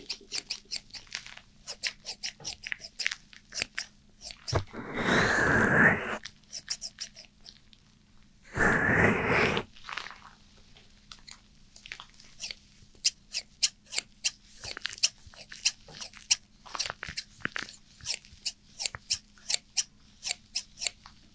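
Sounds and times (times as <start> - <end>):
scissors cutting hair: 0.0 - 4.6, 6.4 - 7.6, 12.3 - 21.0
hissing burst: 4.6 - 6.2, 8.5 - 9.7.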